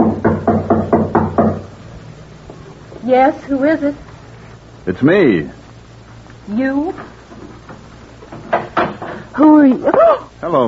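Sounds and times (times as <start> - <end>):
knocking: 0.0 - 1.7, 7.0 - 9.2
speech: 3.1 - 4.1, 4.8 - 5.6, 6.5 - 7.2, 9.4 - 10.6.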